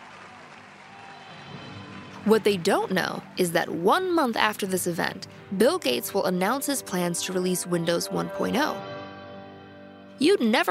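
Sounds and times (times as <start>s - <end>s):
audience applause: 0.0s - 3.8s
speech: 2.2s - 8.9s, 10.2s - 10.6s.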